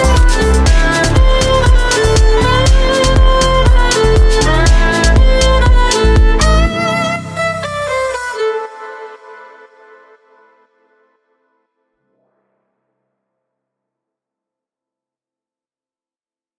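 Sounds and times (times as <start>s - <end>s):
two violins playing a duo: 0.0s - 9.3s.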